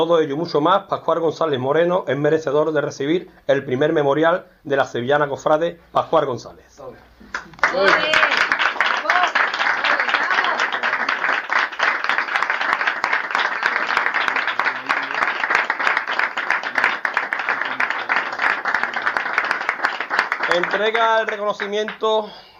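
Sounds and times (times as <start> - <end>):
speech: 0.0 - 8.4, 20.6 - 22.4
audience applause: 7.3 - 22.0.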